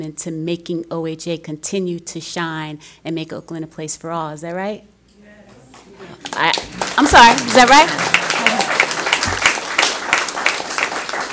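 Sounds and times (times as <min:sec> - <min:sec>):
speech: 0:00.0 - 0:04.9, 0:06.0 - 0:08.2
people applauding in a room: 0:06.0 - 0:11.3.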